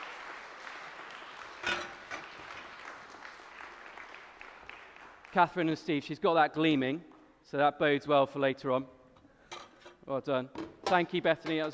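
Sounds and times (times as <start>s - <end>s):
audience applause: 0.0s - 5.8s
speech: 5.3s - 9.0s, 10.1s - 11.7s.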